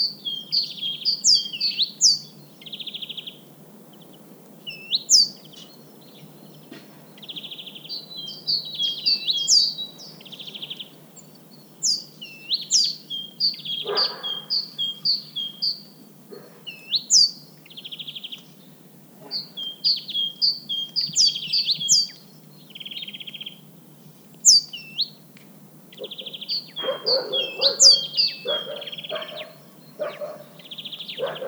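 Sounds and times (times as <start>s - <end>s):
speech: 0.0s - 2.4s, 27.1s - 28.1s
small birds whistling: 0.0s - 3.4s, 4.7s - 6.2s, 7.2s - 18.5s, 19.2s - 23.6s, 24.4s - 25.2s, 25.9s - 31.4s.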